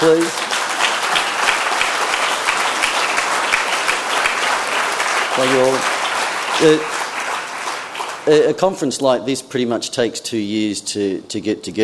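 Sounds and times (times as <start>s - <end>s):
speech: 0.0s - 0.6s, 5.4s - 5.9s, 6.6s - 7.0s, 8.2s - 11.8s
audience applause: 0.0s - 8.8s.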